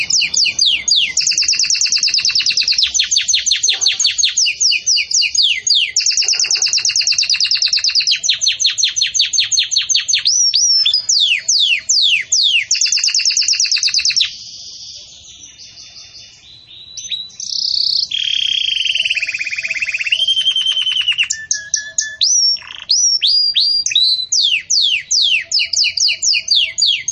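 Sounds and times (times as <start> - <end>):
canary song: 0.0 - 27.1.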